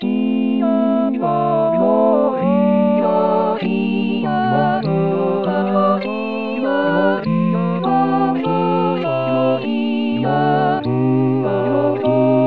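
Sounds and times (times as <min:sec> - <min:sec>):
full choir singing a Sanctus: 0:00.0 - 0:12.4.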